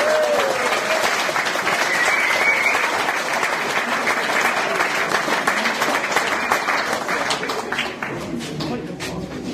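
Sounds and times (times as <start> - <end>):
applause: 0.0 - 9.4.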